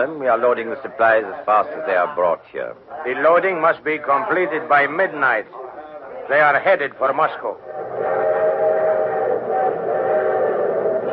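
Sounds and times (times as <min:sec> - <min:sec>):
speech: 0:00.0 - 0:05.7, 0:06.3 - 0:08.2
train whistle: 0:07.6 - 0:11.1.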